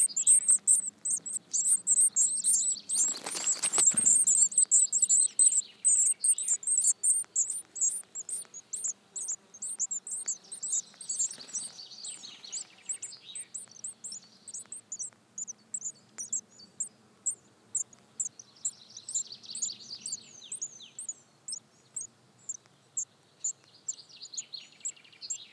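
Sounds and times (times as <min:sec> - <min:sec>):
Eurasian blue tit high chirps: 0:00.0 - 0:25.4
rustling or flapping: 0:02.9 - 0:04.3.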